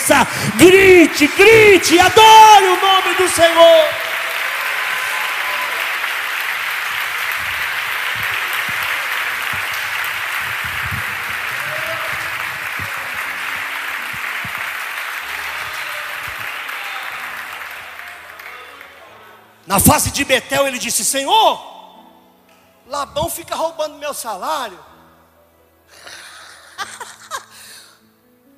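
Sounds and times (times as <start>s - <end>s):
large crowd applauding: 0.0s - 19.6s
speech: 0.1s - 4.1s, 19.8s - 21.7s, 22.9s - 24.9s
laughter: 6.9s - 14.1s, 26.0s - 27.5s.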